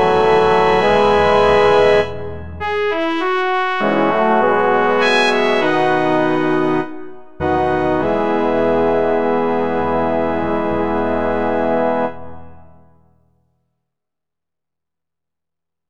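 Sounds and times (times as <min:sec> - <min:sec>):
fanfare: 0:00.0 - 0:12.0.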